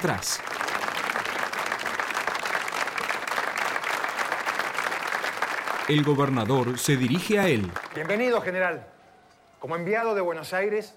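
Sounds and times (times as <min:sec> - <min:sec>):
speech: 0:00.0 - 0:00.6, 0:05.9 - 0:08.9, 0:09.6 - 0:10.9
crowd applause sound effect: 0:00.0 - 0:08.6.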